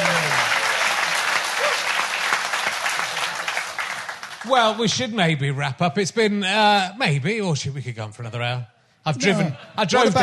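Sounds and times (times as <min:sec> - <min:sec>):
round of applause: 0:00.0 - 0:04.8
speech: 0:04.4 - 0:10.2.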